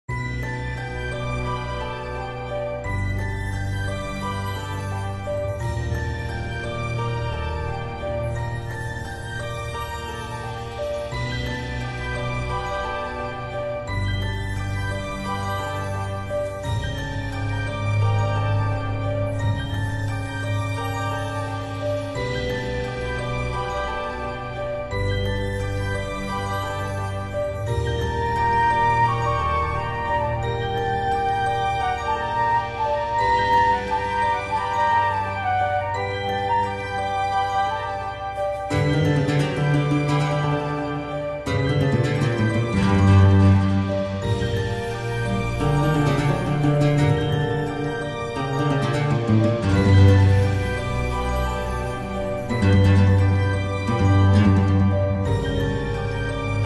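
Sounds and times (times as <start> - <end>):
orchestral arrangement: 0.0 - 56.6.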